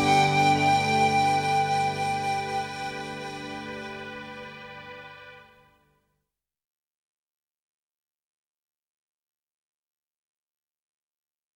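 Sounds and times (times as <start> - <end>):
flute: 0.0 - 5.8.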